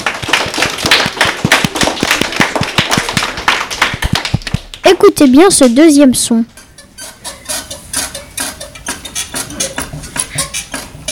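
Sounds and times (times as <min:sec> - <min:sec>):
small group clapping hands: 0:00.0 - 0:04.8
speech: 0:04.9 - 0:06.6.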